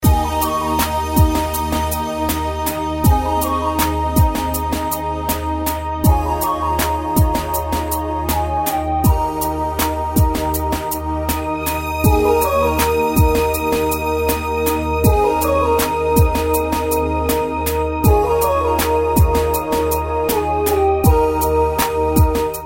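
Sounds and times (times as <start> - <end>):
ringtone: 0.0 - 22.6.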